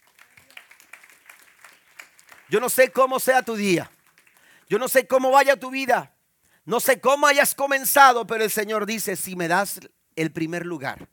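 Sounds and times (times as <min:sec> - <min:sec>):
audience applause: 0:00.0 - 0:04.7
speech: 0:02.5 - 0:04.0, 0:04.7 - 0:11.1.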